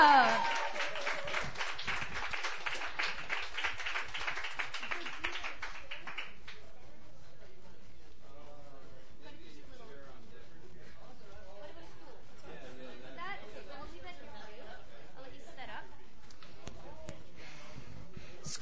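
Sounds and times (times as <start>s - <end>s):
audience applause for performer: 0.0s - 6.4s.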